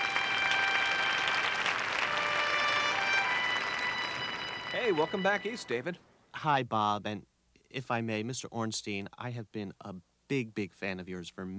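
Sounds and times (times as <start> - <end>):
audience clapping greeting a guest actor and screenwriter: 0.0 - 5.7
speech: 4.8 - 11.5.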